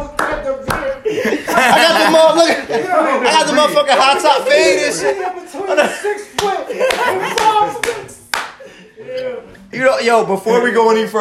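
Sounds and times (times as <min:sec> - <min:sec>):
hands clapping: 0:00.0 - 0:01.0, 0:06.3 - 0:08.7
speech: 0:00.5 - 0:07.7, 0:09.8 - 0:11.1
laughter: 0:00.8 - 0:09.5.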